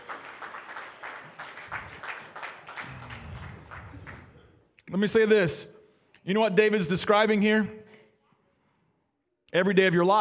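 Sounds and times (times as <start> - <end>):
audience clapping: 0.0 - 4.7
speech: 4.9 - 7.8, 9.5 - 10.1.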